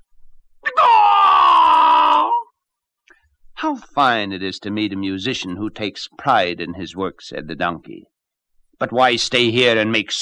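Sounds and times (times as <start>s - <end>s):
person imitating rooster crow: 0.6s - 2.5s
speech: 3.6s - 8.1s, 8.8s - 10.1s.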